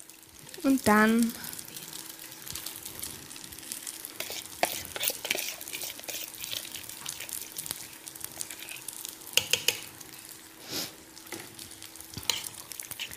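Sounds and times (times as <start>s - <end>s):
speech: 0.6s - 1.4s
spoon stirring a thick pasta and cheese mixture in a pot: 4.1s - 9.9s, 12.1s - 13.1s.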